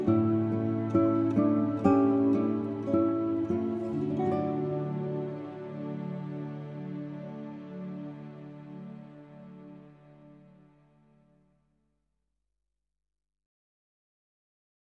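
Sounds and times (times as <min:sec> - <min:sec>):
acoustic praise instrumental music: 0:00.0 - 0:10.1.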